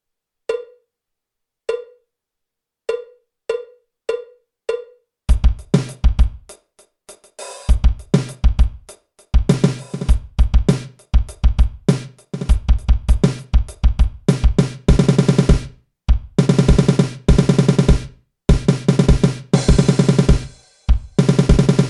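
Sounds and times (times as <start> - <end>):
jazz fusion drum kit solo: 5.3 - 21.8.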